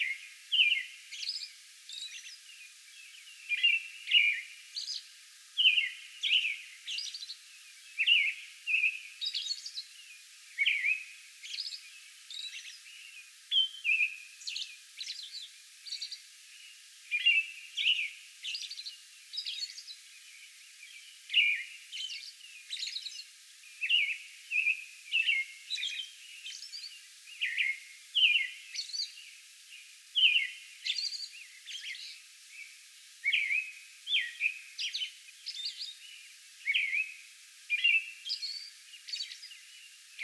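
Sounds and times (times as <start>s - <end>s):
American robin song: 0.0s - 40.2s
faint background hiss: 0.0s - 40.2s.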